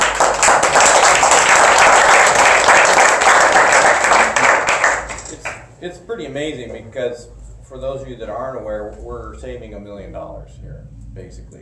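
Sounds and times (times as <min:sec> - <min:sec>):
audience applause: 0:00.0 - 0:05.6
speech: 0:05.8 - 0:11.6.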